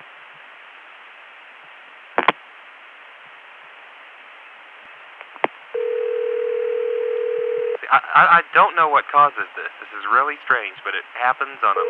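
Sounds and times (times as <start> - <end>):
steady telephone tone: 5.8 - 7.8
telephone line hiss: 5.8 - 7.8, 11.6 - 11.8
speech: 7.9 - 11.8.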